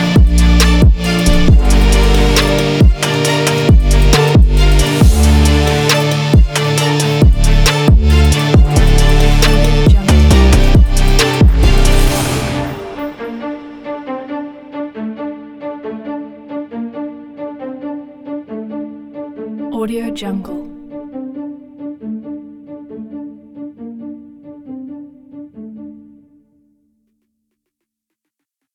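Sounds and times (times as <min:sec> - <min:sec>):
action hip hop epic beat: 0:00.0 - 0:14.5.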